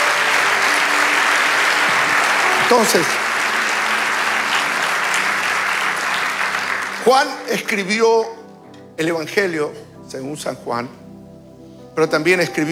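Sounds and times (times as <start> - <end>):
audience applause: 0.0 - 8.4
speech: 2.7 - 3.2, 7.1 - 8.4, 9.0 - 11.0, 12.0 - 12.7.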